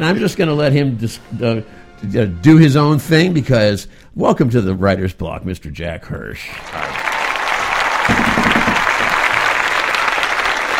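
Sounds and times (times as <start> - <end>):
speech: 0.0 - 7.0
crowd applause: 6.5 - 10.7.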